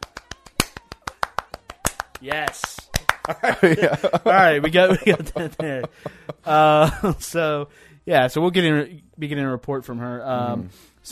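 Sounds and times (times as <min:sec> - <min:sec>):
louder spaced-out slow claps: 0:00.0 - 0:03.8
speech: 0:02.2 - 0:11.1
laughter: 0:03.0 - 0:07.4.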